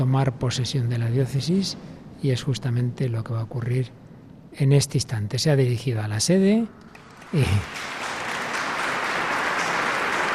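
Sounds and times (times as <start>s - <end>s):
speech: 0.1s - 8.1s
crowd applauding in a reverberant cathedral hall: 6.9s - 10.3s.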